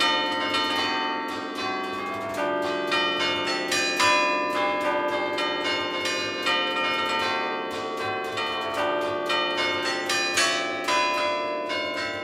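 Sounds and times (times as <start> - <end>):
church bells ringing in Genova, Liguria: 0.0 - 12.2.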